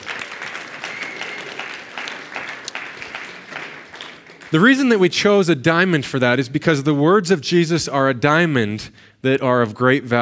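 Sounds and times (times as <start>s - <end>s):
round of applause: 0.0s - 5.0s
speech: 4.5s - 10.2s.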